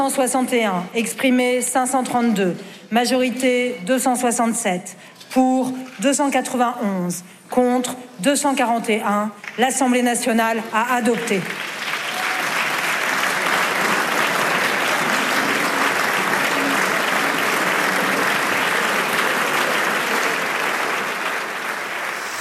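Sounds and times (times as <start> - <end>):
speech: 0.0 - 11.8
applause from a large parliamentary assembly: 9.4 - 22.4.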